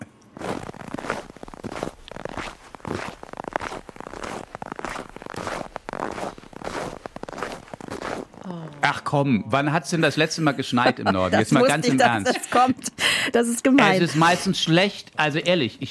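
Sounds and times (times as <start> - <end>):
footsteps in autumn leaves: 0.4 - 8.5
speech: 8.8 - 15.8
laughter: 10.3 - 13.0.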